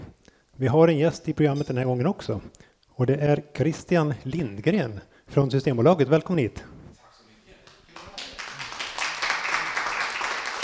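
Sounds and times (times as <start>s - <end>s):
speech: 0.6s - 6.7s
audience applause at a porridge party: 7.9s - 10.6s.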